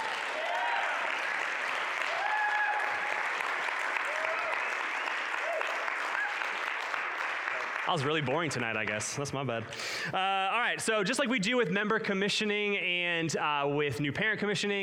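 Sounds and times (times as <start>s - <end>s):
cheers and whoops: 0.0s - 6.8s
audience applauding: 0.0s - 9.6s
speech: 7.9s - 14.8s.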